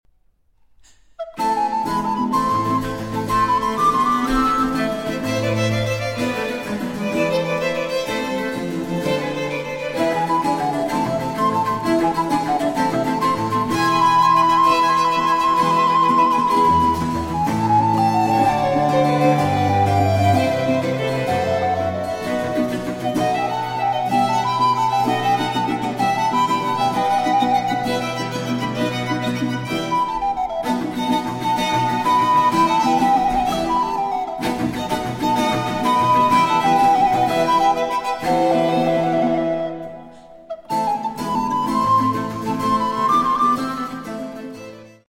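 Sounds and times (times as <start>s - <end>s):
concerto for recorder and two violins and continuo in A minor: 1.2s - 45.0s.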